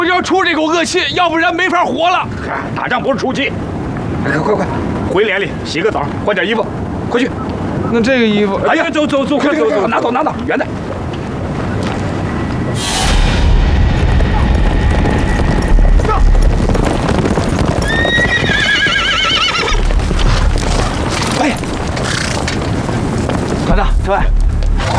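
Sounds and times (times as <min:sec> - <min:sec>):
speech: 0:00.2 - 0:10.9
rough wind buffeting: 0:00.2 - 0:24.9
clip-clopping hooves: 0:09.8 - 0:12.7, 0:14.5 - 0:24.9
horse whinnying: 0:17.8 - 0:22.5.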